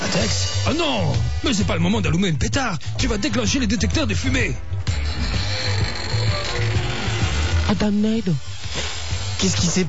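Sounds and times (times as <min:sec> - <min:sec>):
speech: 0:00.1 - 0:04.7, 0:07.7 - 0:08.5, 0:09.4 - 0:09.8
wall sliding open to reveal a secret passage, grinding and ratcheting: 0:03.7 - 0:09.8
low droning pulses: 0:04.0 - 0:09.8.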